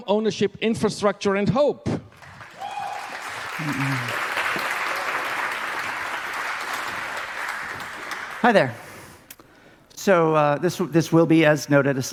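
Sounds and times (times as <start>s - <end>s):
speech: 0.0s - 2.1s, 3.6s - 4.2s, 8.4s - 8.8s, 10.0s - 12.1s
audience applause: 2.1s - 9.0s.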